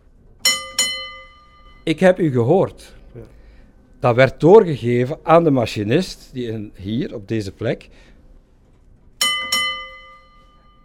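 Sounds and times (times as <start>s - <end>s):
signal bell ringing: 0.4s - 2.2s, 9.2s - 10.8s
speech: 1.8s - 3.4s, 4.0s - 8.1s.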